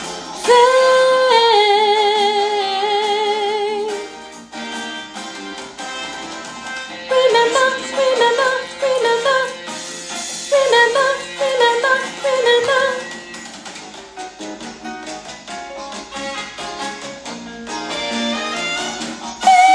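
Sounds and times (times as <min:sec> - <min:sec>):
soprano singing: 0:00.4 - 0:04.0, 0:07.0 - 0:13.2, 0:19.4 - 0:19.7.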